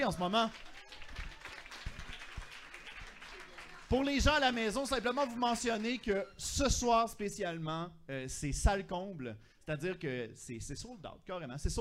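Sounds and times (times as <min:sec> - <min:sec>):
speech: 0:00.0 - 0:00.7, 0:03.9 - 0:11.7
crowd applauding: 0:00.0 - 0:06.4.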